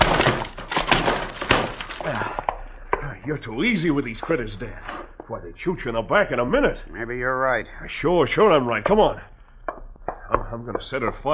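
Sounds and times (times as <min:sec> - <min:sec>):
locked wooden door being busted in: 0:00.0 - 0:02.4
wood splintering: 0:00.0 - 0:02.8
speech: 0:03.2 - 0:09.3, 0:10.3 - 0:11.3.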